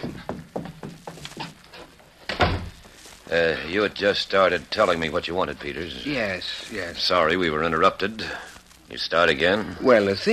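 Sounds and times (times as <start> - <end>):
door being closed: 1.4 - 2.8
speech: 3.3 - 10.3.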